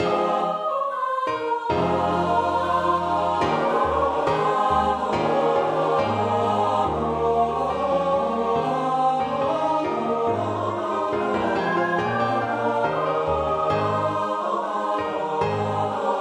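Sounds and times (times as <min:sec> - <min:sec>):
four-part choir singing a carol: 0:00.0 - 0:16.1
organ playing a carol: 0:01.8 - 0:16.1.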